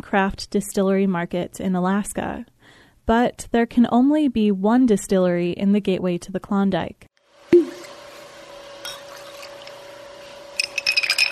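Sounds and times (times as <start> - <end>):
speech: 0.0 - 2.5, 3.1 - 7.1
low steady hum: 7.4 - 11.3
ice and glass clinking as a cocktail is stirred: 8.8 - 9.8, 10.6 - 11.3.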